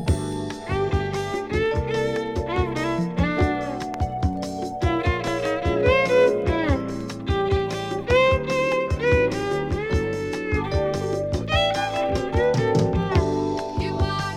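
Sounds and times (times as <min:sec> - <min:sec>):
country rock violin: 0:00.2 - 0:14.3.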